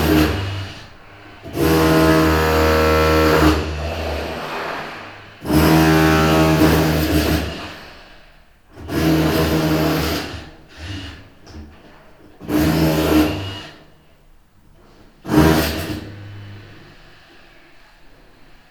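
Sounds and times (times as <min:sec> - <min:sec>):
chiselling a wall: 0:00.0 - 0:07.8, 0:08.8 - 0:13.9, 0:15.2 - 0:16.8.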